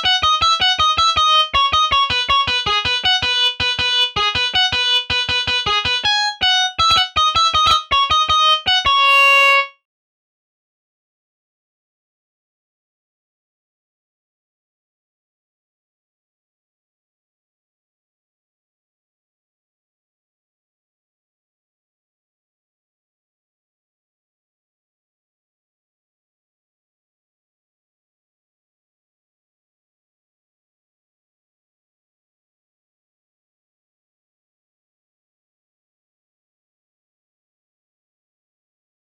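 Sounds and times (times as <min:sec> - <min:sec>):
guitar solo: 0:00.0 - 0:09.7.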